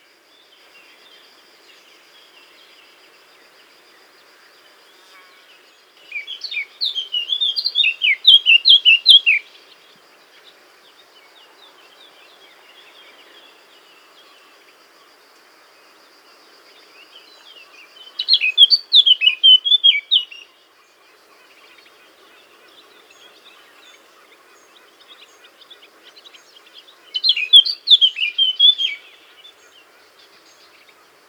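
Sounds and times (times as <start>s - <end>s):
faint background hiss: 0.0s - 31.2s
Eurasian blackcap song: 6.1s - 9.7s, 17.2s - 20.6s, 21.4s - 31.2s.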